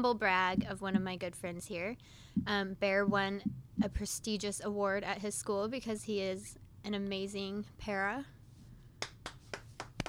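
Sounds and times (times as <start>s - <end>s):
speech: 0.0s - 8.4s
slow clapping: 9.0s - 10.0s.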